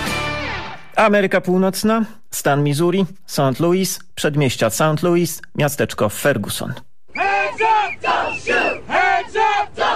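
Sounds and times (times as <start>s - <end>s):
speech: 1.0s - 9.9s
protest crowd chanting a slogan: 7.1s - 9.9s.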